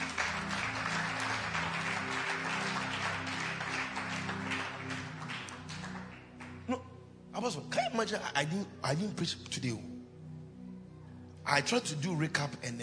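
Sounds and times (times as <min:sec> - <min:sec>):
audience clapping hands: 0:00.0 - 0:06.7
speech: 0:07.4 - 0:09.9, 0:11.5 - 0:12.8.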